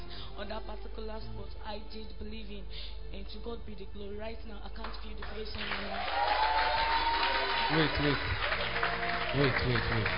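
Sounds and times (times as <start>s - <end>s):
speech: 0.4s - 10.1s
audience clapping: 4.8s - 10.1s.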